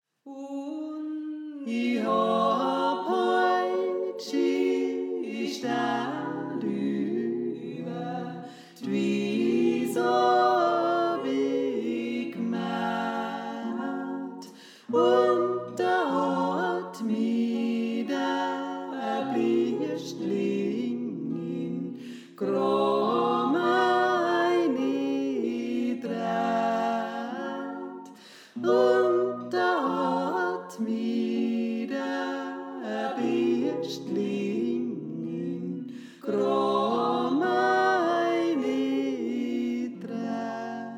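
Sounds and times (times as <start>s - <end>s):
tenor singing: 0.3s - 40.9s.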